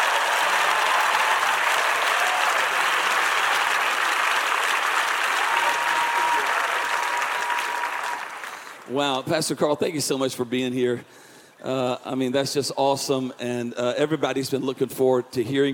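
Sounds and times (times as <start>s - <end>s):
audience clapping to welcome Carl Lentz: 0.0s - 9.0s
speech: 8.9s - 15.7s.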